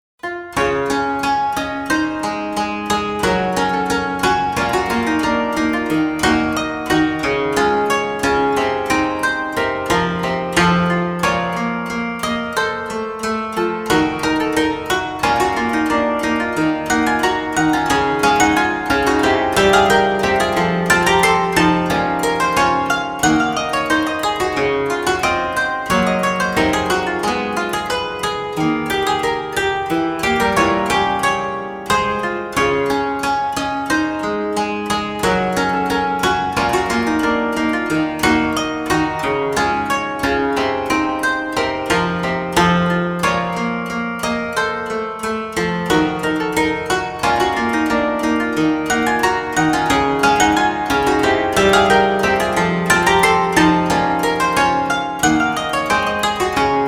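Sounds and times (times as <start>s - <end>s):
koto: 0.2s - 56.8s.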